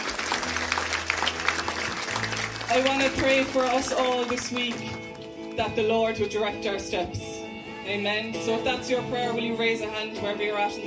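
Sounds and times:
church audience applause: 0:00.0 - 0:05.3
speech: 0:02.7 - 0:07.3, 0:07.9 - 0:10.8.

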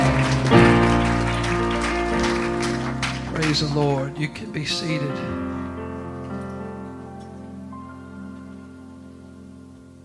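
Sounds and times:
audience hand clapping and shouting: 0:00.0 - 0:04.2
speech: 0:03.5 - 0:05.6.

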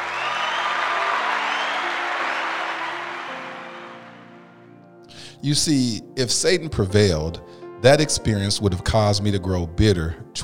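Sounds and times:
round of applause: 0:00.0 - 0:04.6
speech: 0:05.4 - 0:10.4.

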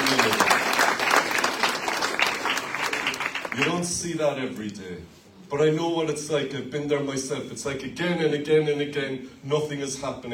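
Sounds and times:
church congregation applauding during a service: 0:00.0 - 0:03.9
speech: 0:03.6 - 0:10.3.

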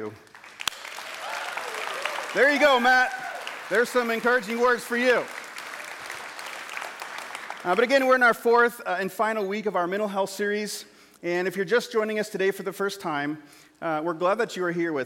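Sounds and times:
speech: 0:00.0 - 0:00.3, 0:02.3 - 0:05.4, 0:07.6 - 0:15.0
round of applause in the room: 0:00.0 - 0:08.2.

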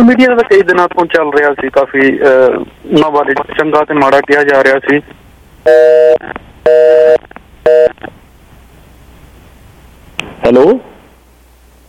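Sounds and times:
speech: 0:00.0 - 0:08.2, 0:10.4 - 0:10.9
telephone line beeps after a call disconnects: 0:05.7 - 0:08.0.

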